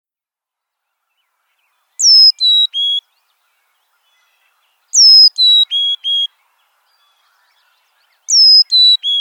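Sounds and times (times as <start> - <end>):
Carolina chickadee calling with a high sliding whistle and buzzy dee notes: 2.0 - 9.2.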